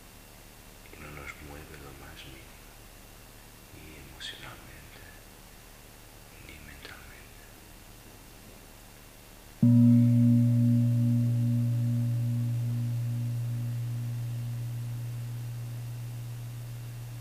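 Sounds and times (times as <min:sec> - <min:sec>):
speech: 0:01.4 - 0:02.6, 0:04.2 - 0:04.8
deep meditation gong ringing: 0:09.6 - 0:17.1.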